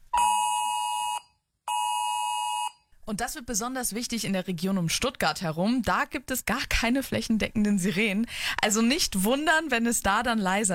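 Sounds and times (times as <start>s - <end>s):
mobile phone emergency alert tone: 0.1s - 2.8s
speech: 3.1s - 10.7s.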